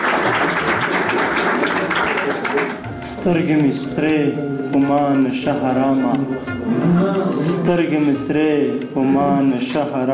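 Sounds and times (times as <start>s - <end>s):
audience applause for a poet at a Pashto poetry recital: 0.0s - 3.0s
speech: 3.2s - 10.1s.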